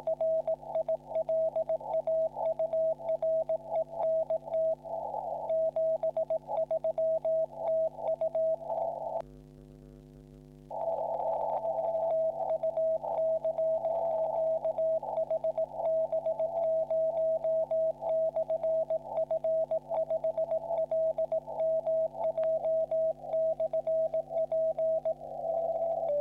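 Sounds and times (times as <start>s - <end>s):
40m CW morse code radio contact: 0.0s - 8.9s, 11.4s - 26.1s.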